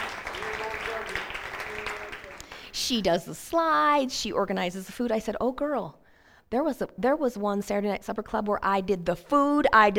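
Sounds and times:
audience hand clapping: 0.0s - 2.8s
speech: 2.9s - 9.9s.

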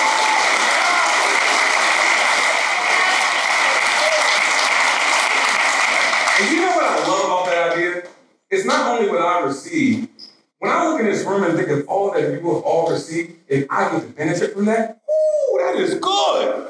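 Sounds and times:
audience applause: 0.0s - 7.9s
speech: 8.0s - 16.6s.

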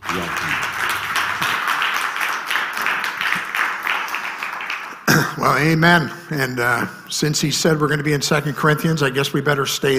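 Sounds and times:
church congregation clapping to welcome a guest speaker: 0.0s - 5.9s
speech: 0.1s - 0.5s, 5.5s - 9.9s.

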